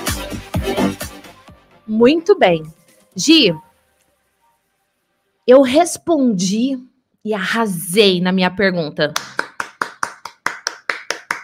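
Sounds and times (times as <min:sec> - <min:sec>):
speech: 0:01.9 - 0:03.6, 0:05.5 - 0:09.4
sharp hand claps: 0:09.2 - 0:11.4.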